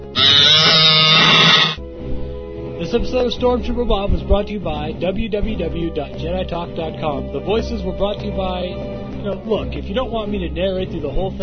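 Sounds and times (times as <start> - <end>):
Star Wars tauntaun creature bleating growl: 0.1 - 1.8
speech: 2.9 - 11.4.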